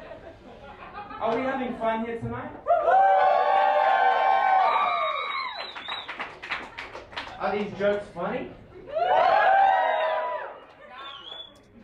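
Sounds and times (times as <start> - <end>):
speech: 1.2 - 2.7, 7.4 - 8.6
weak crowd cheer: 2.6 - 6.3, 8.9 - 11.5.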